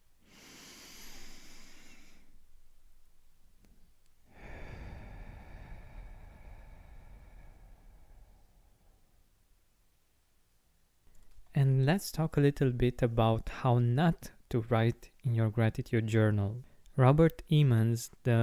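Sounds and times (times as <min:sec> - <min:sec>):
deep breath in through the nose and out through the mouth: 0:00.2 - 0:02.5, 0:04.2 - 0:09.3
speech: 0:11.9 - 0:18.4.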